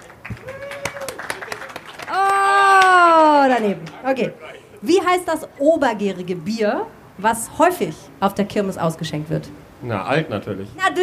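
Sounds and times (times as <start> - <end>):
audience applause: 0.0 - 4.0
speech: 3.7 - 11.0.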